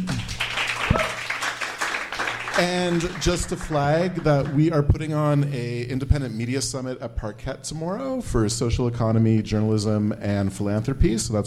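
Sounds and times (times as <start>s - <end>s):
audience applause for a panel group after a conversation: 0.0s - 4.8s
speech: 2.6s - 11.4s.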